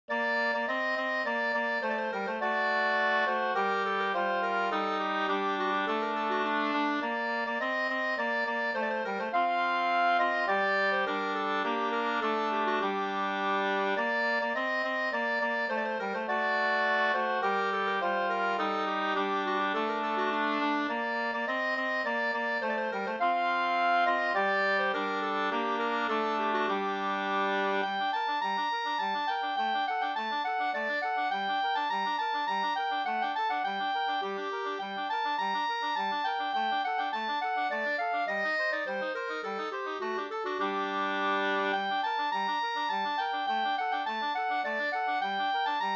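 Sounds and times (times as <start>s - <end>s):
slangpolska folk dance tune: 0.1s - 45.9s.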